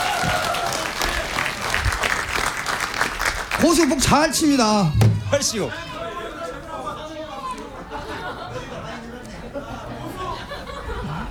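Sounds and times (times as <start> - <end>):
audience applause at a gathering: 0.0 - 6.1
speech: 3.6 - 5.9
laughter: 3.6 - 11.2.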